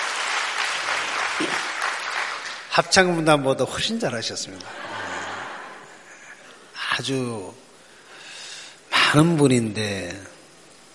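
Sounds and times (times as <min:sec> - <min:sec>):
audience applause for a choir: 0:00.0 - 0:02.7
speech: 0:02.8 - 0:05.0, 0:07.0 - 0:07.6, 0:09.1 - 0:10.3.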